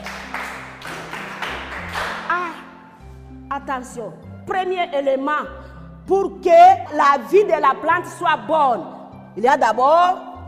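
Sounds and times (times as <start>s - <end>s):
classroom children clapping hands: 0.0s - 2.6s
speech: 3.6s - 10.3s.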